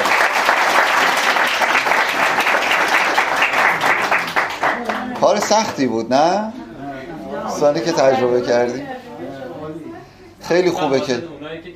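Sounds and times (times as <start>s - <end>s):
crowd applauding: 0.0s - 5.8s
speech: 5.4s - 6.6s, 7.6s - 9.0s, 10.5s - 11.7s.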